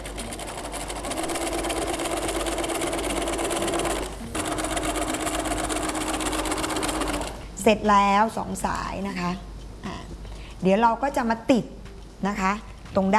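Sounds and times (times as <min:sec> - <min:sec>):
sewing machine stitching through folded pressed fabric: 0:00.0 - 0:07.4
speech: 0:07.6 - 0:09.5, 0:10.6 - 0:13.1.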